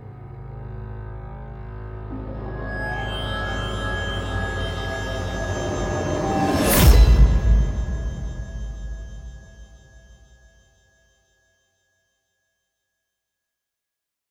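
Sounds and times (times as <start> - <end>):
dark future opener music at 120 BPM: 0.6 - 10.5.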